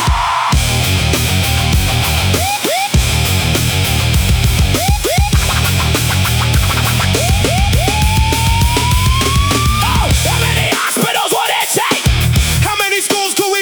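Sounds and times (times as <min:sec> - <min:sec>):
loud rock music: 0:00.0 - 0:13.6.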